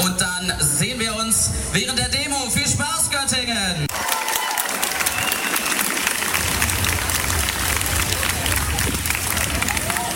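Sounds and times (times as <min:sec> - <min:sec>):
speech: 0:00.5 - 0:03.0
large crowd cheering and clapping at the start of a pride parade: 0:03.9 - 0:10.1
low rumble: 0:06.3 - 0:10.0.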